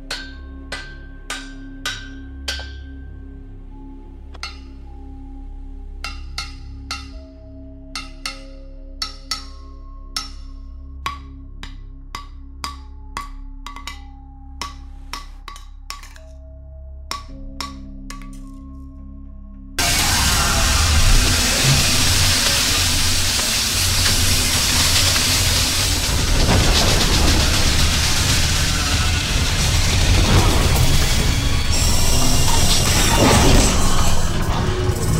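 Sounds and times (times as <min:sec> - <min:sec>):
mechanic hydraulic pneumatic machine: 0:19.8 - 0:35.1.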